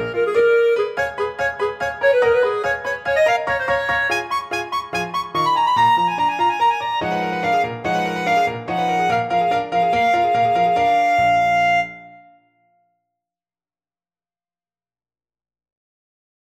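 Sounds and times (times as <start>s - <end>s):
clarinet playing Romanian folk dance: 0.0s - 12.4s.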